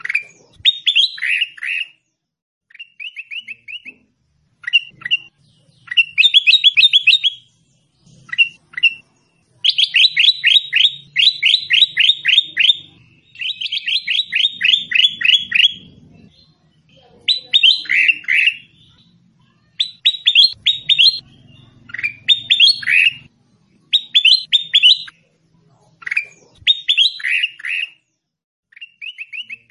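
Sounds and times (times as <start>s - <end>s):
sooty-headed bulbul pouring out downslurred chirps: 0.0s - 2.1s, 2.7s - 16.6s, 17.2s - 25.2s, 26.0s - 28.1s, 28.7s - 29.6s.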